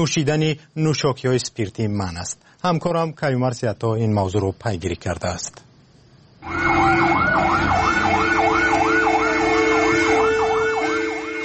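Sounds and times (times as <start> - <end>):
speech: 0.0 - 5.7, 6.4 - 7.7
fire engine siren in a steady yelp pattern: 6.4 - 11.4.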